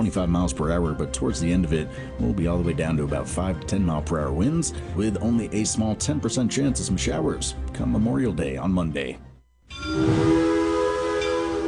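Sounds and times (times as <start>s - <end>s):
speech: 0.0s - 10.4s
train whistle: 9.7s - 11.6s.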